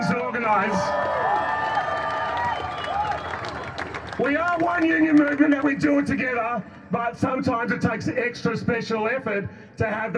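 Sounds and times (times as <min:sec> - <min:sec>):
crowd cheering at a large union rally: 0:00.0 - 0:06.2
speech: 0:00.4 - 0:01.3, 0:04.2 - 0:10.1
crowd applause at a large union rally: 0:00.9 - 0:06.1.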